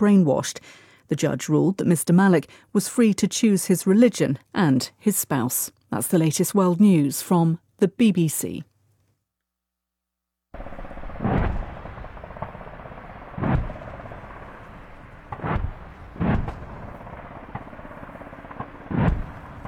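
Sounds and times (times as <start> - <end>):
speech: 0.0 - 8.7
heavy booming blasts from a military live-fire exercise near Townsville, Queensland, Australia: 10.6 - 19.6.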